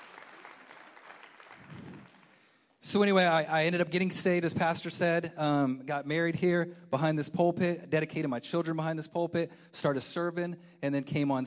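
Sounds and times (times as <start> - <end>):
church congregation clapping: 0.0 - 2.8
speech: 2.9 - 11.4.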